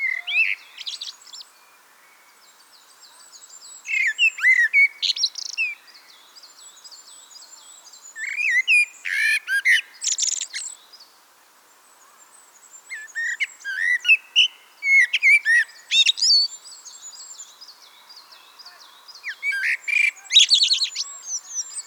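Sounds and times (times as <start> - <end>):
Eurasian blackbird song: 0.0 - 11.1, 11.9 - 21.8.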